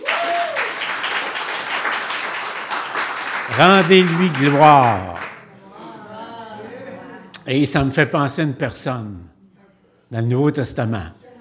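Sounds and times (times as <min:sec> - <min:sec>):
audience cheering: 0:00.0 - 0:05.4
speech: 0:03.5 - 0:05.2, 0:07.5 - 0:09.4, 0:10.1 - 0:11.2.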